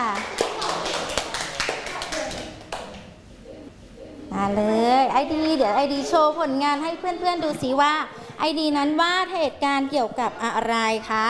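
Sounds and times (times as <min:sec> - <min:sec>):
children clapping in classroom: 0:00.0 - 0:03.1
speech: 0:04.4 - 0:11.2.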